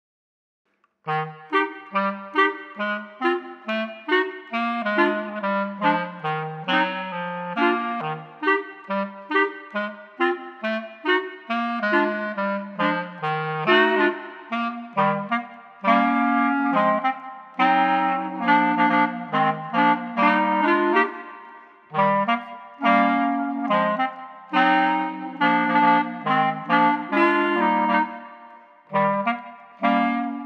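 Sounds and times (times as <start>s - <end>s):
clarinet trio: 1.1s - 30.4s.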